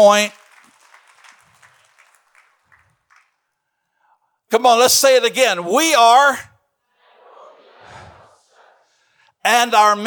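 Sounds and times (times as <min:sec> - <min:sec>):
speech: 0:00.0 - 0:00.4, 0:04.5 - 0:06.5, 0:09.4 - 0:10.0
audience hand clapping: 0:00.0 - 0:03.7.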